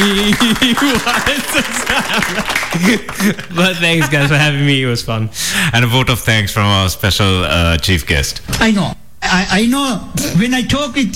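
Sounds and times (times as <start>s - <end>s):
crowd clapping: 0.0s - 3.8s
laughter: 0.0s - 4.8s
speech: 0.0s - 11.1s.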